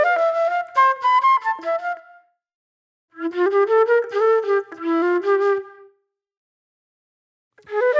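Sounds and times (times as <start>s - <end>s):
reflective flute music: 0.0s - 2.4s, 3.1s - 6.1s, 7.6s - 7.9s.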